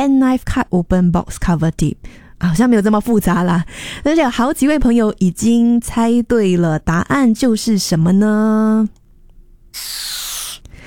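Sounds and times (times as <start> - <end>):
speech: 0.0 - 9.0, 9.8 - 10.2
balloon being inflated: 9.7 - 10.8.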